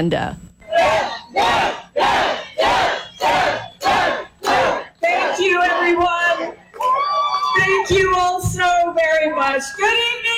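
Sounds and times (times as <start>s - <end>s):
speech: 0.0s - 1.8s, 7.8s - 10.2s
crowd chanting a name: 0.7s - 6.6s.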